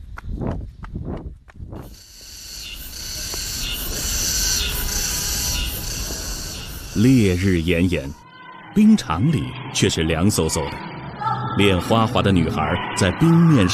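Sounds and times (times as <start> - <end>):
runners' footsteps crunching on a path in Olympic Forest Park: 0.0 - 2.3
insects droning: 1.8 - 8.2
speech: 7.0 - 8.2, 8.8 - 10.9, 11.6 - 13.7.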